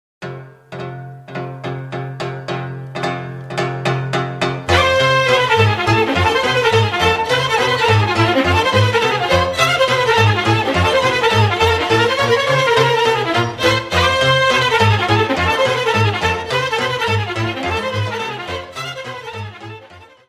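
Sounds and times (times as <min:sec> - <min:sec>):
sarba concert folk dance music: 0:00.3 - 0:20.2.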